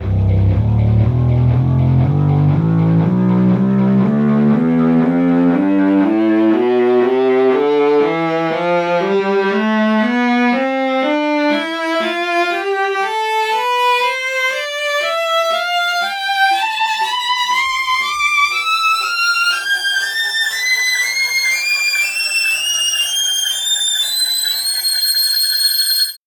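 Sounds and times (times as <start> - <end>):
viola playing a scale: 1.1 - 26.2.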